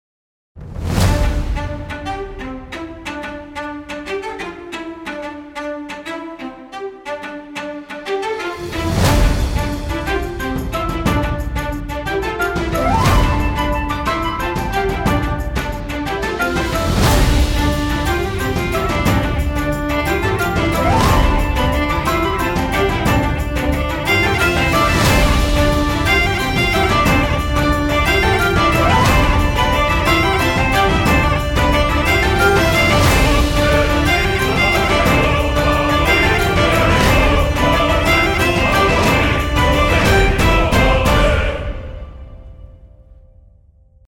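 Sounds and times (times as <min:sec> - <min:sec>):
music: 0:00.6 - 0:44.0.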